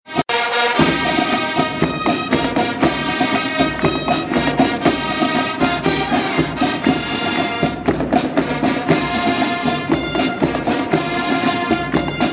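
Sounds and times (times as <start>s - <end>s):
SMS fanfare and drum tone: 0.1s - 12.3s.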